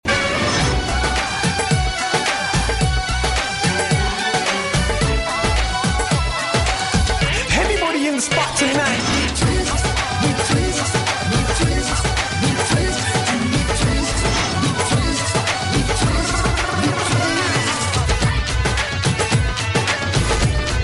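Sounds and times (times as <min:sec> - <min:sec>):
Bollywood ringtone: 0:00.8 - 0:20.8.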